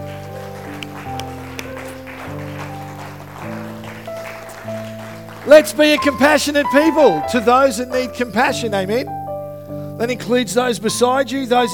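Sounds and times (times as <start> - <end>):
audience clapping: 0.0 - 7.2
speech: 5.5 - 9.2, 10.0 - 11.7.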